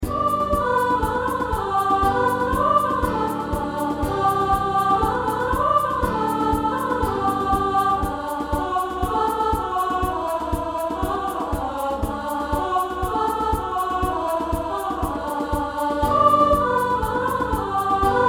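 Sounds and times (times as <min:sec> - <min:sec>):
person singing: 0:00.0 - 0:18.2.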